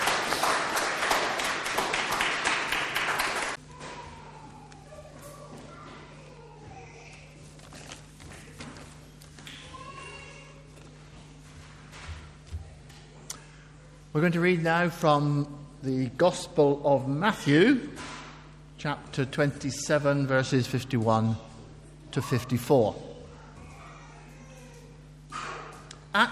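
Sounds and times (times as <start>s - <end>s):
audience applause: 0.0s - 3.6s
speech: 14.2s - 18.1s, 18.8s - 21.5s, 22.1s - 23.0s.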